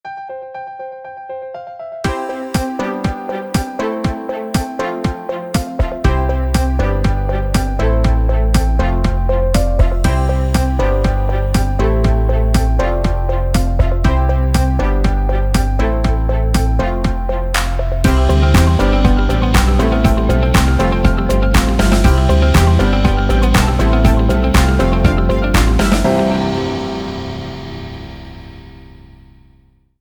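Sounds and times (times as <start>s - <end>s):
inspirational corporate music: 2.1s - 29.4s.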